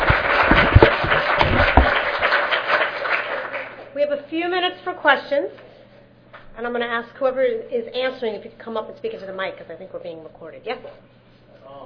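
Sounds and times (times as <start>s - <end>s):
audience applause: 0.0s - 3.9s
speech: 4.9s - 5.7s, 6.6s - 11.8s.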